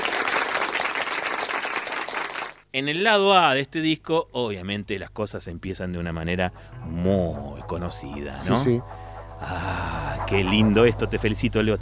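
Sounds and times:
crowd applause: 0.0s - 2.6s
speech: 2.8s - 11.7s.

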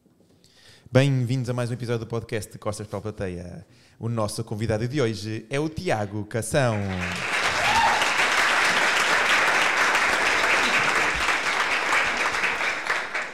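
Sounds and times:
speech: 0.9s - 7.3s
crowd applauding: 6.7s - 13.3s.

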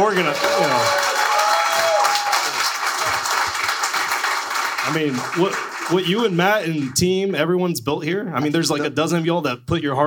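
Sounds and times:
round of applause: 0.0s - 7.0s
speech: 0.2s - 1.1s, 4.8s - 10.0s.

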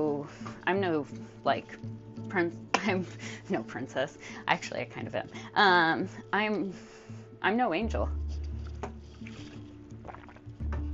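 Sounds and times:
speech: 0.0s - 8.2s
person drinking water: 8.4s - 10.9s.

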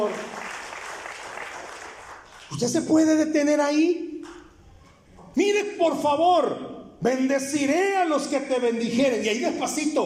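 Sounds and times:
speech: 0.0s - 0.3s, 2.5s - 4.1s, 5.4s - 10.0s
loud audience applause: 0.0s - 2.6s.

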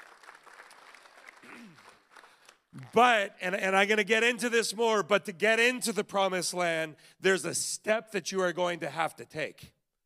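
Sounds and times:
audience applause: 0.0s - 3.0s
speech: 2.7s - 9.8s.

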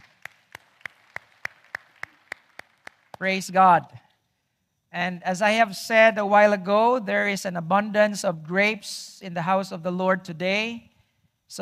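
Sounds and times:
audience clapping: 0.0s - 3.2s
speech: 3.2s - 4.0s, 4.9s - 10.9s.

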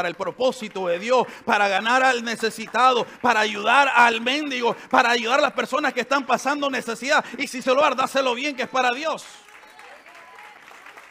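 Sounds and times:
audience applause: 0.0s - 5.8s, 8.2s - 11.0s
speech: 0.0s - 9.5s.

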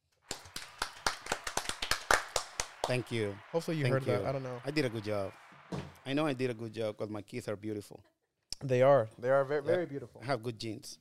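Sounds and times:
applause: 0.0s - 7.0s
speech: 2.9s - 10.9s.

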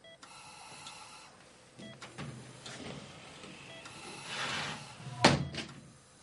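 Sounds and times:
sliding glass door opening in a hospital room: 4.1s - 5.3s.

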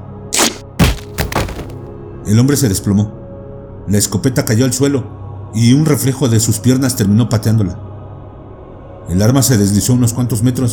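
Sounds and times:
man's head smashed against a wall: 0.4s - 1.8s
sickening crack: 0.4s - 1.8s
speech: 2.3s - 3.2s, 3.9s - 7.8s, 9.1s - 10.7s.

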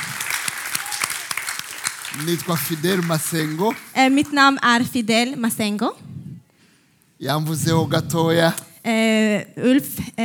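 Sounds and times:
audience applause: 0.0s - 4.4s
speech: 2.2s - 6.1s, 7.2s - 10.2s.

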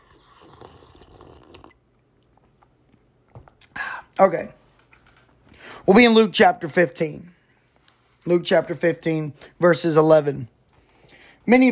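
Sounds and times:
slurp of hot coffee: 0.0s - 1.8s
small mouth sounds: 0.0s - 2.8s
speech: 4.2s - 4.6s, 5.8s - 7.4s, 8.2s - 10.5s, 11.4s - 11.7s.

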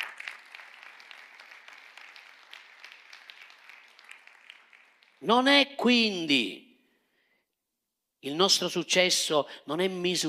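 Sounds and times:
audience applause: 0.0s - 5.2s
speech: 5.2s - 6.6s, 8.2s - 10.2s.

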